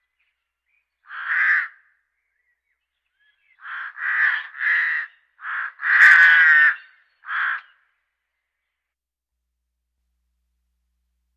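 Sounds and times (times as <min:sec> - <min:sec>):
birds: 0:00.0 - 0:08.9.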